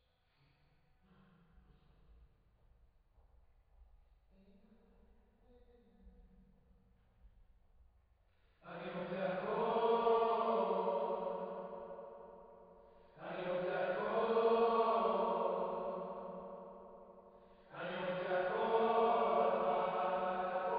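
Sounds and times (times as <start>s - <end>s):
choir singing: 8.7s - 20.7s.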